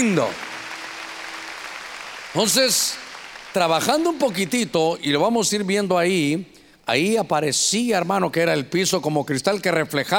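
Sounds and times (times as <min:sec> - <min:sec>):
speech: 0:00.0 - 0:00.5, 0:02.3 - 0:03.0, 0:03.6 - 0:10.1
audience clapping loudly: 0:00.0 - 0:05.4.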